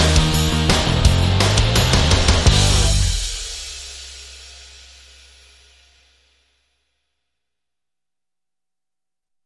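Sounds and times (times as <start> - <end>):
rock music: 0.0 - 4.2.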